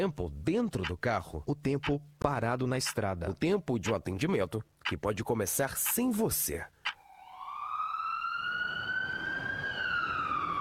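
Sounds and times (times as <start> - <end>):
speech: 0.0 - 6.8
emergency vehicle siren on the streets of Recife: 7.0 - 10.5.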